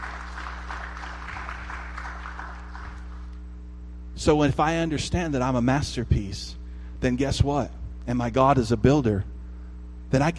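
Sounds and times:
audience applause: 0.0s - 3.3s
low electrical hum: 0.0s - 10.3s
speech: 4.2s - 9.3s, 10.1s - 10.3s.

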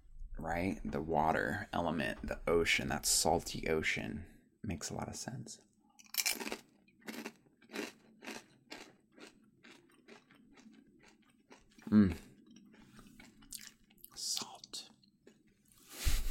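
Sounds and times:
speech: 0.4s - 5.7s, 11.9s - 12.3s
crisp crunchy chewing of a snack: 6.0s - 14.2s.

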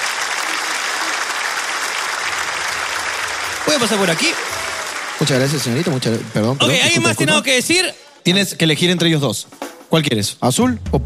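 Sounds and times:
applause: 0.0s - 7.8s
speech: 3.7s - 4.6s, 5.2s - 11.0s.

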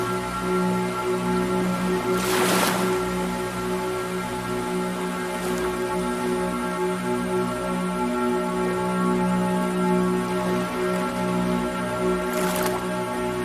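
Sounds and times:
ambient music: 0.0s - 13.4s
ocean waves: 1.8s - 6.6s, 10.1s - 13.4s.

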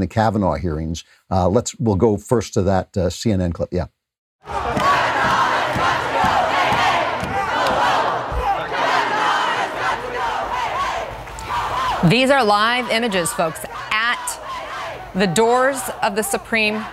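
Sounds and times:
speech: 0.0s - 4.9s, 12.0s - 13.7s, 15.2s - 16.9s
large protest crowd shouting outside the Supreme Court: 4.4s - 16.9s.

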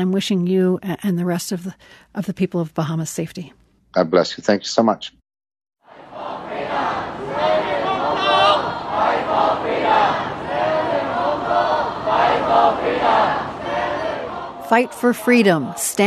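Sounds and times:
speech: 0.0s - 5.2s, 14.7s - 16.0s
protesters chanting in a crowd: 5.8s - 16.0s.

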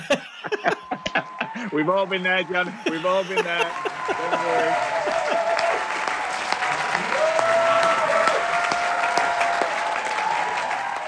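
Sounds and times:
laughter: 0.0s - 7.2s
theatre audience applause as lights go down: 0.0s - 11.0s
speech: 0.6s - 5.0s.

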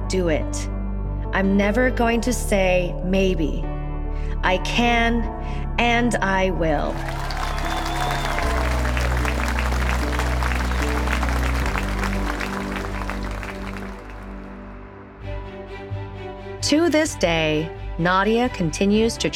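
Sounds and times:
speech: 0.1s - 7.3s, 16.7s - 19.3s
sustained music tones: 6.1s - 19.3s
large audience applause: 6.9s - 14.6s.

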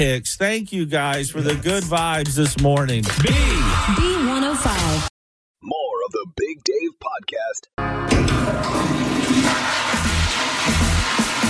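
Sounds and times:
speech: 0.0s - 9.9s
toilet flushing: 8.1s - 11.4s.

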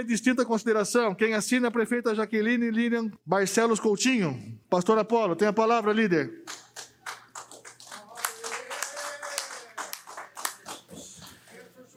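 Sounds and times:
speech: 0.0s - 6.6s
applause: 6.4s - 11.5s.

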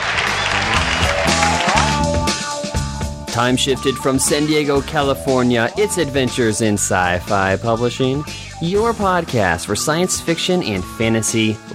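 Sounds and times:
cheering crowd sound effect: 0.0s - 2.2s
speech: 3.4s - 11.7s.

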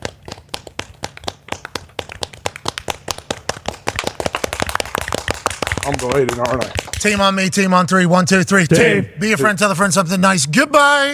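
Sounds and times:
hands clapping: 0.0s - 7.5s
speech: 5.9s - 11.1s.

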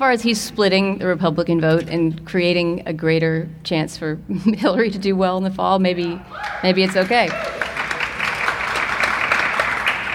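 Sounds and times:
speech: 0.0s - 7.7s
light smattering of audience applause: 6.4s - 10.1s.

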